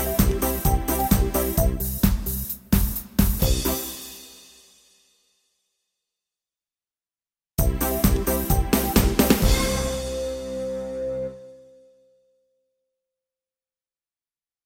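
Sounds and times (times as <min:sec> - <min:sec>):
disco music: 0:00.0 - 0:04.3, 0:07.6 - 0:11.3.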